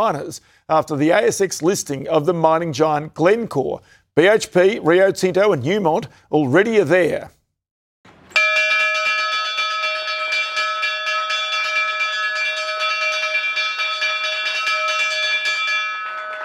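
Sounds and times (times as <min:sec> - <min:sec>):
speech: 0:00.0 - 0:07.4
stock exchange listing bell ringing: 0:08.3 - 0:16.4.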